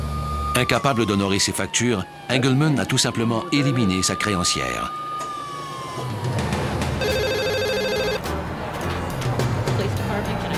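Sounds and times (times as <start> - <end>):
speech: 0.6 - 5.1
busy noise: 1.9 - 10.5
electronic telephone ringing at a police station: 7.0 - 8.2.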